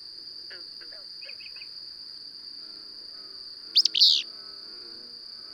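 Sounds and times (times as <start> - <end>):
bird giving loud sweeping chirps: 3.8 - 4.2.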